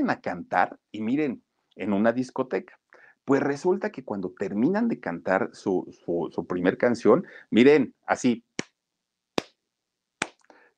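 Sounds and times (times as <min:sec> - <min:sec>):
speech: 0:00.0 - 0:08.5
three lone hand claps: 0:10.2 - 0:10.4.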